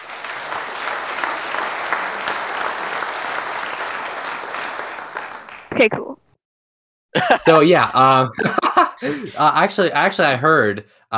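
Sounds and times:
applause sound effect: 0.0 - 6.0
speech: 5.8 - 6.2, 7.2 - 11.1
laughter: 7.2 - 10.2.

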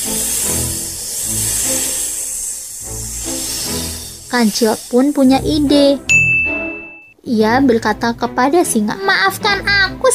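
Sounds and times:
python snake hissing: 0.0 - 6.1
speech: 4.4 - 6.2, 7.3 - 10.1.

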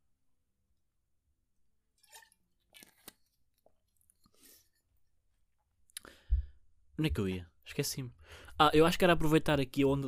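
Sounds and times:
person drinking water: 2.0 - 4.8
speech: 7.0 - 10.0.

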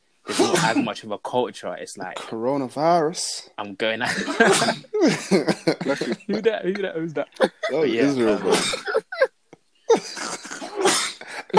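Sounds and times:
person sneezing: 0.3 - 0.9, 4.3 - 5.1, 9.9 - 11.5
speech: 0.3 - 9.0
laughter: 4.0 - 11.5.

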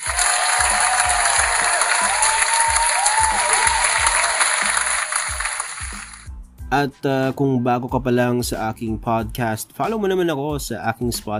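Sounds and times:
warm round of applause: 0.0 - 6.3
speech: 6.7 - 11.3.

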